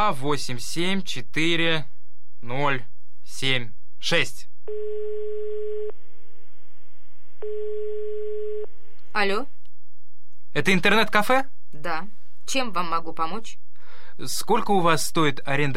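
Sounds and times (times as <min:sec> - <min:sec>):
speech: 0:00.0 - 0:05.0, 0:09.2 - 0:09.6, 0:10.5 - 0:13.6, 0:14.2 - 0:15.7
telephone ringback tone with no one answering: 0:04.7 - 0:06.0, 0:07.4 - 0:08.7.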